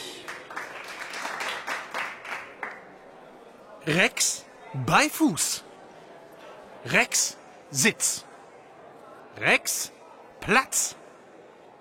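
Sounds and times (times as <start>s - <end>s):
audience applause: 0.0s - 2.9s
speech: 3.9s - 5.7s, 6.8s - 8.3s, 9.4s - 11.0s.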